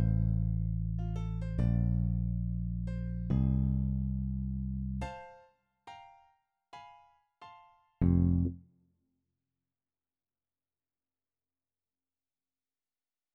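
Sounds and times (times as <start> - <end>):
bass: 0.0 - 5.2, 8.0 - 8.6.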